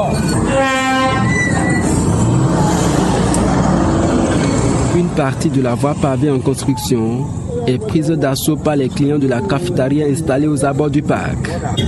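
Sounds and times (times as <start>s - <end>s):
motorcycles at a bus station: 0.0s - 11.8s
vehicle traffic at a bus station: 0.0s - 11.8s
bus station users conversing: 2.4s - 11.8s
speech: 5.2s - 11.8s.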